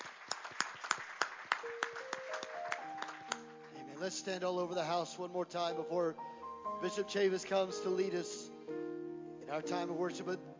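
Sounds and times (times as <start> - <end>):
audience hand clapping: 0.0 - 4.2
speech: 4.0 - 8.8, 9.5 - 10.5.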